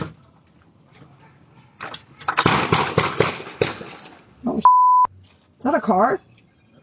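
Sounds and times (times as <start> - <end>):
distant gunshots on doorbell camera: 2.4 - 3.9
speech: 5.6 - 6.3.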